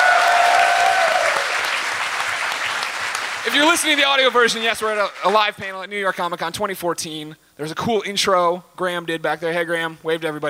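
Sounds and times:
audience applause: 0.0s - 5.5s
speech: 3.5s - 10.4s.

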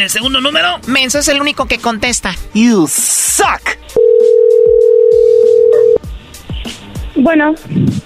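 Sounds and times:
speech: 0.0s - 3.8s, 7.2s - 8.0s
telephone tone after the call dropped: 4.0s - 6.0s.

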